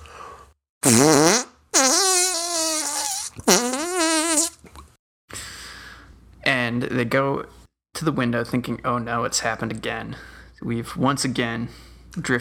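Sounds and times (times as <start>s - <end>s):
voice imitating an earth-shattering crack: 0.8s - 4.6s
short hiss: 0.9s - 4.6s
speech: 6.8s - 12.3s.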